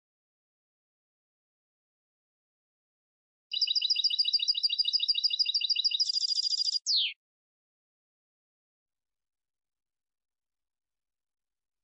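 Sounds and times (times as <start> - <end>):
European goldfinch song: 3.5 - 7.2.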